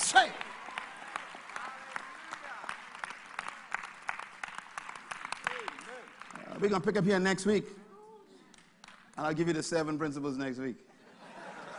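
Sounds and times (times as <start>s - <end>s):
church congregation clapping along: 0.0s - 7.5s, 8.5s - 10.0s
speech: 6.6s - 7.8s, 9.2s - 10.9s
laughter: 10.9s - 11.7s.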